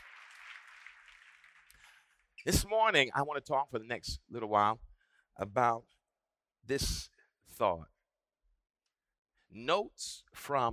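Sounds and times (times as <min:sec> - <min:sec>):
audience clapping hands in praise: 0:00.0 - 0:02.4
speech: 0:02.4 - 0:05.9, 0:06.6 - 0:07.9, 0:09.5 - 0:10.7.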